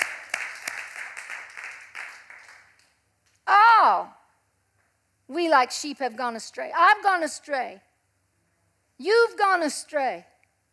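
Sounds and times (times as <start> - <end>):
audience clapping across a large room: 0.0 - 3.0
speech: 5.4 - 7.9, 9.0 - 10.3.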